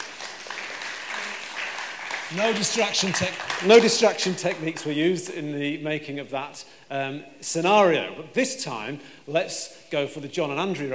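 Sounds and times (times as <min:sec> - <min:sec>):
crowd clapping: 0:00.0 - 0:05.0
speech: 0:02.3 - 0:10.9.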